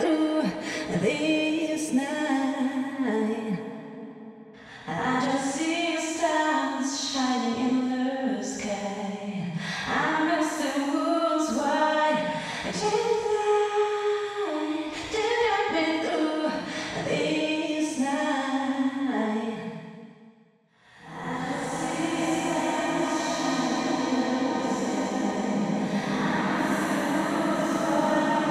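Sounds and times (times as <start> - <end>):
female vocal with reverb: 0.0 - 19.9, 20.9 - 28.4.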